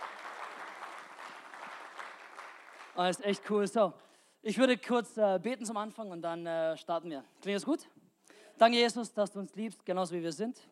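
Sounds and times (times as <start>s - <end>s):
audience applause: 0.0s - 3.0s
speech: 3.0s - 8.0s, 8.6s - 10.7s.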